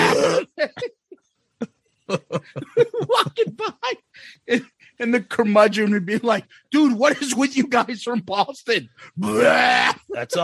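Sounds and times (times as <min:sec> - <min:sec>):
burping: 0:00.0 - 0:00.8, 0:09.2 - 0:10.0
laughter: 0:02.1 - 0:04.7, 0:06.0 - 0:08.5, 0:09.2 - 0:10.4
speech: 0:05.1 - 0:10.4.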